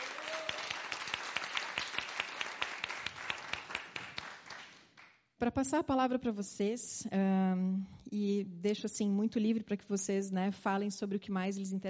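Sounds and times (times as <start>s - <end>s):
audience applause: 0.0s - 4.8s
speech: 5.4s - 11.8s.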